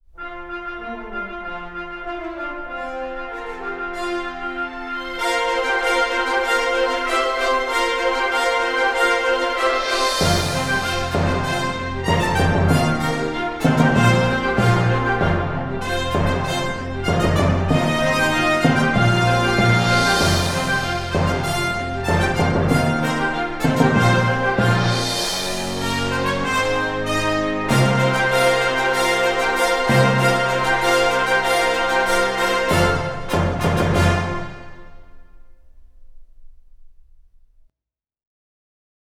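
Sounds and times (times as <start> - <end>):
fanfare: 0.2 - 35.4.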